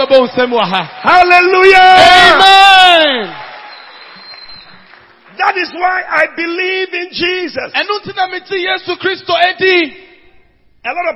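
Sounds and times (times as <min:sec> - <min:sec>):
speech: 0:00.0 - 0:03.5, 0:05.4 - 0:10.1, 0:10.8 - 0:11.1
audience applause: 0:00.0 - 0:06.0.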